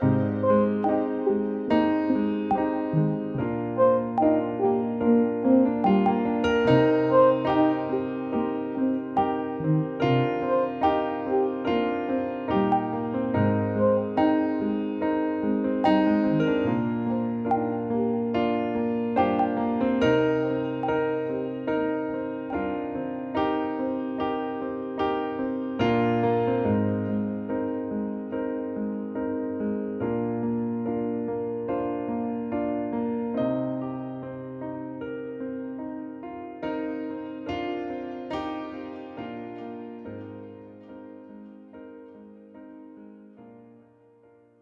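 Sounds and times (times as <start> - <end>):
piano ballad: 0.0 - 44.6.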